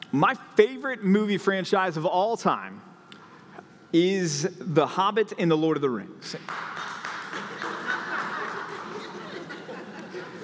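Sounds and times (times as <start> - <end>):
speech: 0.1 - 2.9, 3.9 - 6.8
applause: 6.3 - 9.3
laughter: 7.3 - 10.4.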